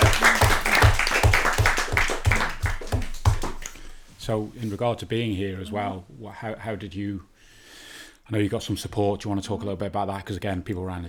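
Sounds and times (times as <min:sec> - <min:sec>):
group applauding: 0:00.0 - 0:04.0
speech: 0:04.3 - 0:07.3, 0:08.3 - 0:11.0.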